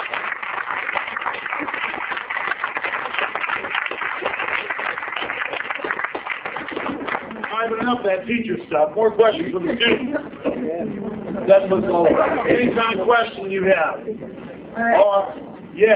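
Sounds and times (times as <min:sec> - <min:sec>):
audience applause: 0:00.0 - 0:08.0
speech: 0:07.9 - 0:15.9.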